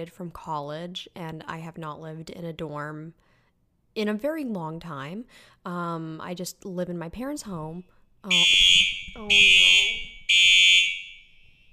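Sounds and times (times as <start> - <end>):
speech: 0.0 - 3.3, 4.0 - 9.9
fire alarm going off: 8.3 - 11.7.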